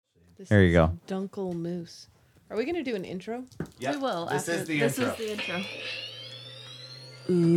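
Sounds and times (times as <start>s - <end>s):
speech: 0.4s - 6.1s, 7.3s - 7.5s
device vibrating when powered up: 4.7s - 7.5s.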